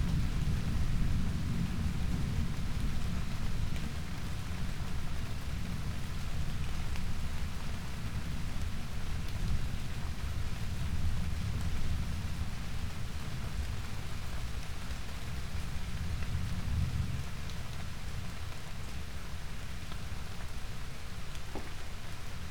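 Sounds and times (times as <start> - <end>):
rain: 0.0 - 22.4.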